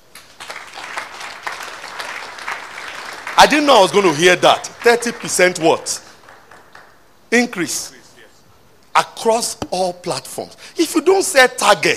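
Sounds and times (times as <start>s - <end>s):
audience applause: 0.2s - 7.0s
speech: 3.4s - 6.1s, 7.3s - 8.0s, 9.0s - 11.9s.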